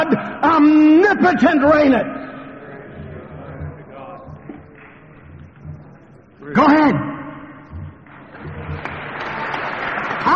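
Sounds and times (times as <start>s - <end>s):
speech: 0.1s - 2.2s, 6.4s - 7.2s
audience applause: 8.3s - 10.3s.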